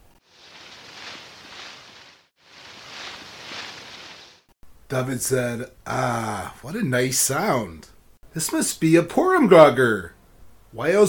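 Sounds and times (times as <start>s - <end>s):
soft rustling: 0.0s - 4.5s
speech: 4.9s - 11.0s.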